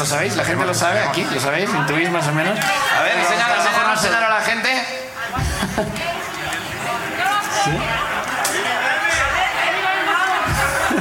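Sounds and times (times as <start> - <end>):
speech: 0.0 - 6.2
audience shouting an answer: 0.0 - 10.9
laughter: 5.2 - 10.9.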